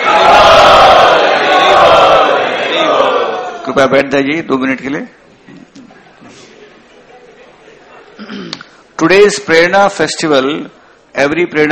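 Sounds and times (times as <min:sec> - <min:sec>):
crowd of devotees at a festival chanting loudly in welcome: 0:00.0 - 0:03.6
speech: 0:03.7 - 0:05.8, 0:08.2 - 0:11.7.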